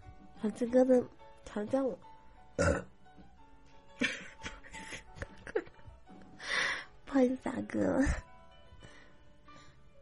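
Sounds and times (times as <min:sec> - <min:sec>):
speech: 0:00.4 - 0:02.9, 0:07.2 - 0:08.3
loud burp: 0:02.6 - 0:03.0.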